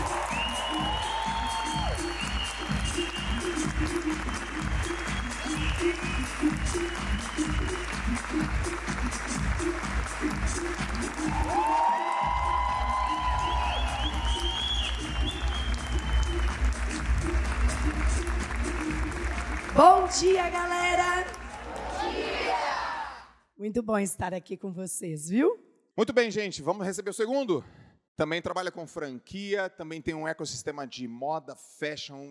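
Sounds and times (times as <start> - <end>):
cheers and whoops: 0.0 - 3.4, 11.2 - 16.3
audience applause: 0.0 - 23.2
speech: 23.7 - 32.2.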